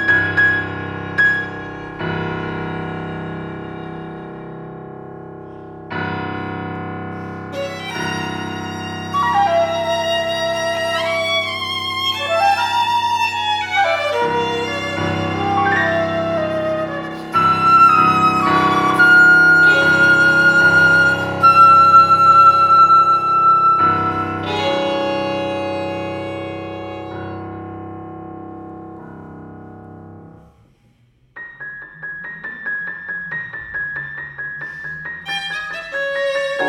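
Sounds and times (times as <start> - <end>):
violin: 0.0 - 5.2, 7.2 - 29.0, 34.7 - 36.6
piano: 0.0 - 36.6
flute: 7.6 - 25.2.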